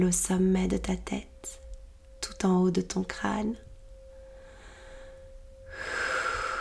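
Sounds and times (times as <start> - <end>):
speech: 0.0 - 1.6, 2.4 - 3.7
deep inhalation during a guided breathing meditation: 5.7 - 6.5.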